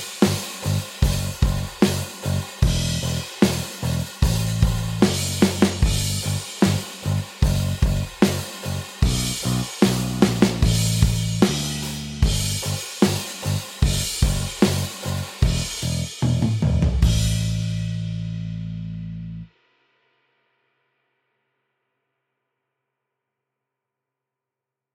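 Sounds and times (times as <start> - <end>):
drum and bass music: 0.0 - 19.5.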